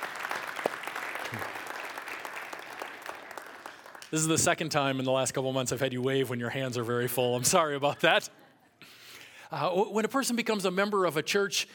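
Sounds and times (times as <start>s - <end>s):
audience applause: 0.0s - 4.4s
speech: 1.3s - 1.6s, 4.1s - 8.4s, 9.5s - 11.7s.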